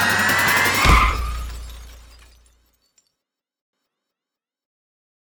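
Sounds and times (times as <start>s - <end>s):
glass breaking: 0.1s - 2.9s.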